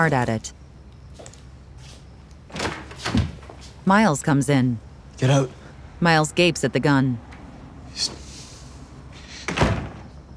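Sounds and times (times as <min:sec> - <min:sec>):
speech: 0:00.0 - 0:00.6, 0:03.9 - 0:07.3, 0:08.0 - 0:08.2
bedroom door closing: 0:02.5 - 0:03.6, 0:09.4 - 0:10.2.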